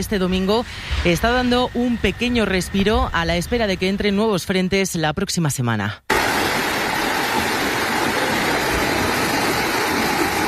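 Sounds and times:
speech: 0.0 - 6.1
swollen river rushing: 6.1 - 10.4.

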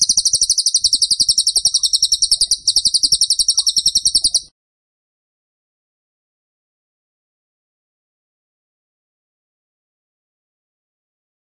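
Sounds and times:
bird trilling: 0.0 - 4.5.

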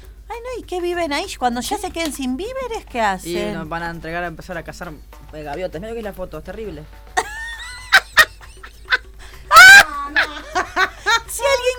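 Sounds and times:
speech: 0.5 - 7.1
laughter: 7.2 - 11.6
guard cockatoo squawking: 8.9 - 10.6.

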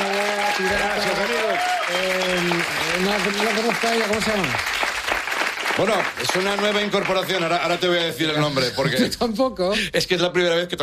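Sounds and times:
live audience applause for a band at a comedy show: 0.0 - 8.4
speech: 0.6 - 4.8, 5.8 - 10.8.

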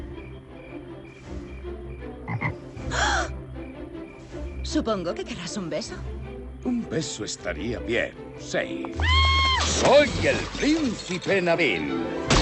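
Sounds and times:
frog croaking: 0.2 - 7.3
speech: 4.7 - 12.4.

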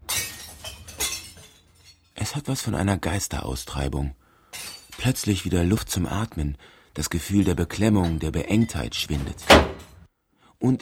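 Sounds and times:
glass jars smashing in a dumpster: 0.0 - 2.1, 4.4 - 5.4, 7.8 - 10.0
glass shards tinkling: 0.0 - 2.2, 4.4 - 5.5, 7.8 - 10.0
speech: 2.2 - 4.2, 5.0 - 9.8, 10.6 - 10.8.

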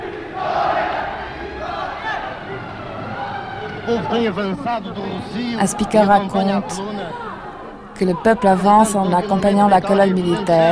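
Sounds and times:
large crowd shouting and cheering: 0.0 - 10.6
louder wavering calls: 0.0 - 10.6
speech: 3.9 - 7.4, 8.0 - 10.6.

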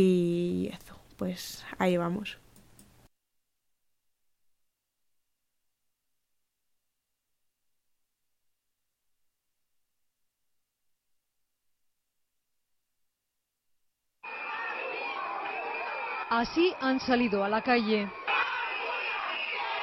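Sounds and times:
speech: 0.0 - 0.3, 1.2 - 2.4, 16.3 - 18.2
protest crowd shouting at street demonstration: 14.2 - 19.8.

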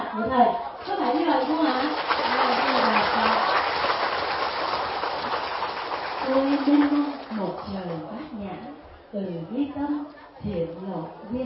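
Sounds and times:
speech: 0.2 - 2.0, 9.1 - 11.4
crowd applauding: 0.8 - 7.7.

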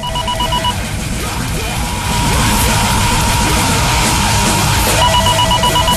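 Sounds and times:
metal song with distorted guitars: 0.0 - 5.9.

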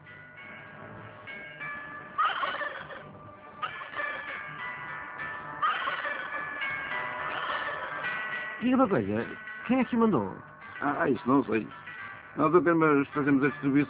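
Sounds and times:
turkey gobbling: 2.2 - 3.0, 3.6 - 4.4, 5.6 - 6.6, 7.3 - 8.1
speech: 8.6 - 11.8, 12.4 - 13.8.

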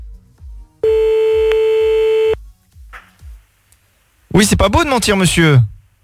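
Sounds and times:
telephone tone as a call is placed to the police: 0.8 - 2.4
speech: 4.4 - 5.8.

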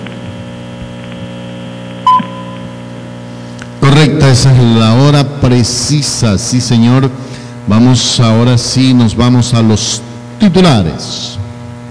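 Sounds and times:
low steady hum: 0.0 - 11.8
radio time signal beep set by an atomic clock: 2.0 - 2.7
speech: 4.2 - 11.4.

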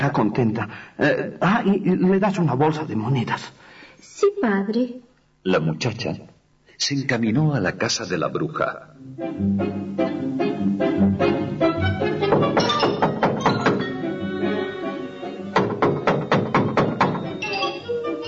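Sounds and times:
speech: 0.0 - 11.4
steady low tonal background: 9.0 - 18.2
knocking on a wooden door: 12.2 - 14.0, 15.5 - 17.4.

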